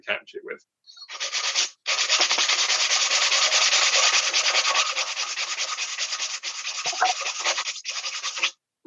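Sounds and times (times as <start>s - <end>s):
sandpaper scraping a rusty metal barbecue: 1.0s - 8.5s.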